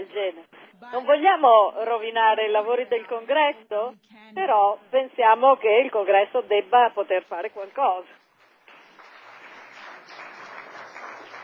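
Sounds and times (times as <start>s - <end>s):
speech: 0.0s - 8.2s
audience applause: 8.6s - 11.4s.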